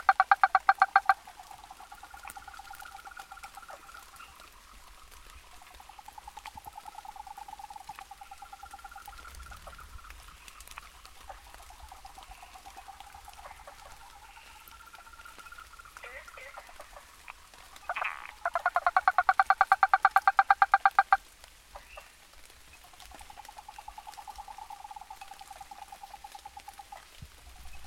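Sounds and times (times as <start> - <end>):
frog trill: 0.0 - 1.2, 17.9 - 21.2.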